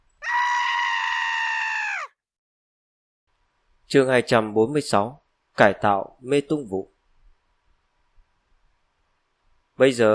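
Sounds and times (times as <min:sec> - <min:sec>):
loud anguished scream echoing: 0:00.2 - 0:02.2
speech: 0:03.9 - 0:06.9, 0:09.8 - 0:10.1.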